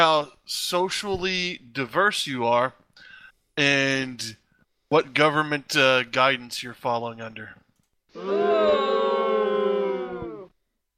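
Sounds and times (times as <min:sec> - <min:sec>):
speech: 0:00.0 - 0:02.8, 0:03.6 - 0:07.6, 0:08.2 - 0:09.1
cheering crowd sound effect button: 0:08.2 - 0:10.6.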